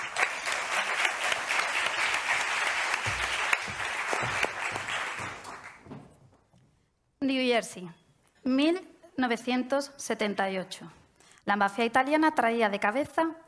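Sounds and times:
audience applause: 0.0 - 5.9
speech: 4.2 - 4.5, 7.3 - 13.4.

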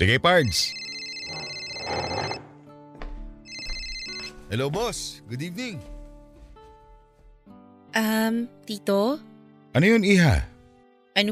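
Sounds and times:
speech: 0.0 - 2.1, 4.5 - 5.9, 7.9 - 10.5
telephone ringing with an electronic tone for an incoming call: 0.4 - 2.6, 3.5 - 4.6.

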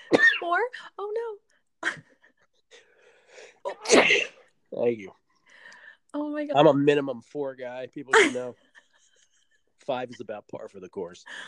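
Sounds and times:
speech: 0.5 - 2.0, 4.8 - 5.2, 6.1 - 8.7, 9.9 - 11.4
person sneezing mid-show: 3.7 - 4.4.

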